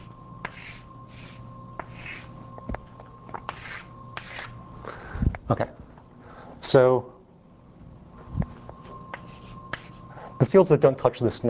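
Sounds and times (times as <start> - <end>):
drawing a quiver diagram by hand: 0.5 - 2.3, 3.5 - 4.5
speech: 5.5 - 5.8, 6.7 - 7.2, 10.5 - 11.4.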